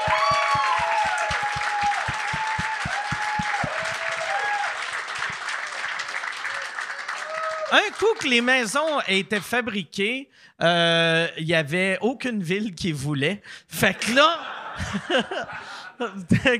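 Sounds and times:
steady rhythmic thumps: 0.0s - 4.0s
high whistles and cheers: 0.0s - 5.2s, 6.4s - 7.9s
audience applause: 0.0s - 9.0s
speech: 7.7s - 16.5s
laughter: 13.9s - 16.5s.

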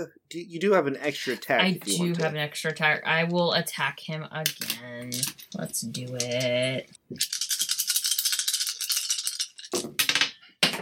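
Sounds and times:
speech: 0.0s - 7.4s
dice rattling: 4.5s - 10.4s.

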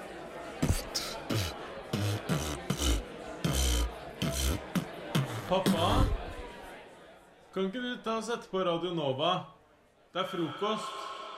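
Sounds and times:
person beatboxing: 0.6s - 6.3s
speech: 5.5s - 6.2s, 7.6s - 11.0s.

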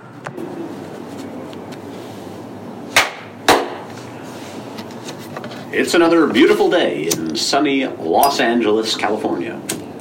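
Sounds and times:
hand clap: 3.0s - 3.8s
speech: 5.7s - 9.9s.

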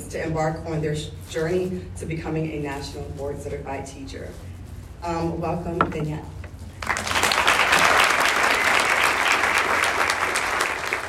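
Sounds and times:
speech: 0.0s - 6.4s
audience applause: 6.8s - 11.0s.

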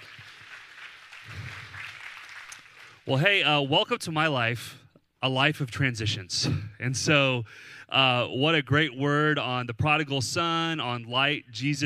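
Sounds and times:
audience clapping: 0.0s - 3.1s
speech: 3.1s - 11.8s.

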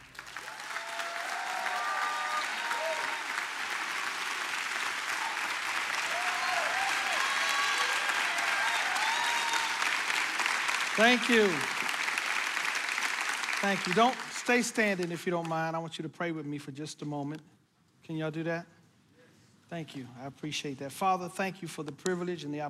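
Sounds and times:
church audience applauding to welcome a pastor to the stage: 0.0s - 15.0s
speech: 11.0s - 11.8s, 13.6s - 18.8s, 19.7s - 22.6s.

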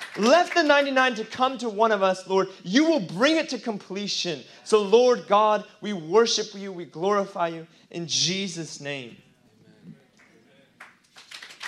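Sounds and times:
people clapping: 0.0s - 1.2s, 10.1s - 11.6s
speech: 0.2s - 9.2s.

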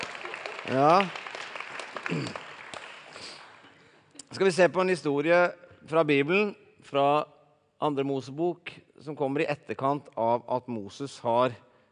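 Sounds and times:
audience clapping: 0.0s - 4.0s
speech: 0.7s - 1.2s, 2.1s - 2.4s, 4.3s - 11.7s.

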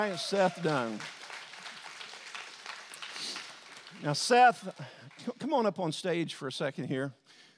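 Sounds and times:
speech: 0.0s - 1.2s, 4.0s - 7.4s
audience applause welcoming a man onto a stage: 0.0s - 5.2s.

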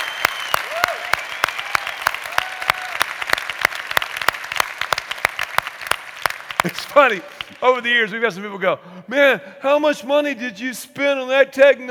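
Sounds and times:
audience applause: 0.0s - 7.7s
speech: 6.6s - 11.8s.

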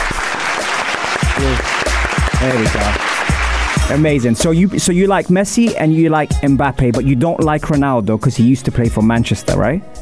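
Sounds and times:
clapping: 0.0s - 4.0s
speech: 2.4s - 3.3s, 3.9s - 9.9s.

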